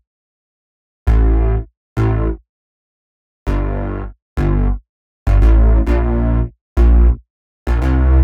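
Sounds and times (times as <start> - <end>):
D bass tube tone: 1.1 - 2.3, 4.4 - 8.2.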